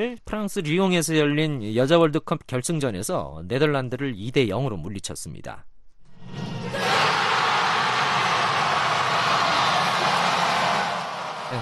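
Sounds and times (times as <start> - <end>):
speech: 0.0 - 5.7
stadium crowd cheering: 6.7 - 11.5.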